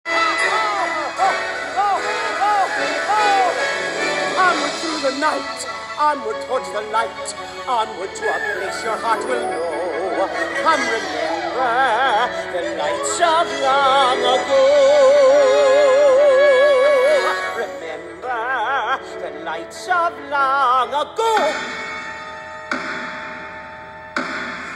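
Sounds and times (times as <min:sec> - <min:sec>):
vocals: 0:00.1 - 0:22.6.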